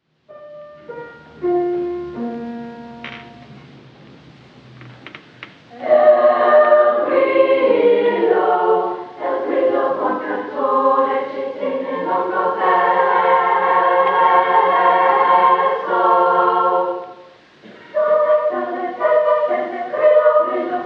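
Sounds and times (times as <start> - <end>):
madrigal choir singing: 5.7 - 20.8.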